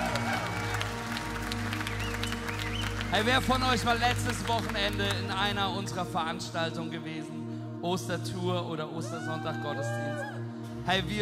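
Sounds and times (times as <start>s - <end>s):
scattered cheers: 0.0s - 2.8s
large crowd applauding: 0.0s - 5.7s
speech: 3.1s - 10.3s, 10.9s - 11.2s.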